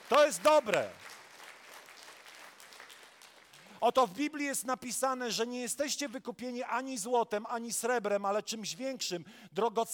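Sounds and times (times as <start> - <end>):
audience clapping: 0.0 - 4.2
speech: 0.1 - 1.1, 3.8 - 9.9.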